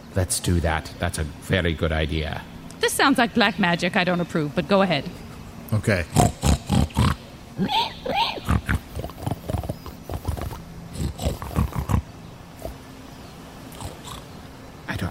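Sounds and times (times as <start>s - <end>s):
speech: 0.2s - 6.4s, 7.6s - 8.6s
people imitating pig grunts and snuffles: 5.7s - 12.8s.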